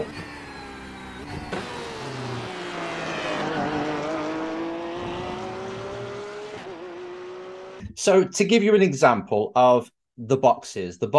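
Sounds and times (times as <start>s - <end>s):
race car engine driving on track: 0.0s - 7.9s
speech: 8.0s - 11.1s.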